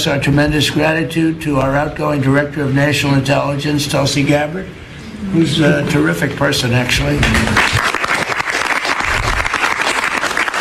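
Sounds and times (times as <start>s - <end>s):
speech: 0.0s - 7.8s
laughter: 3.8s - 8.4s
applause: 7.2s - 10.5s.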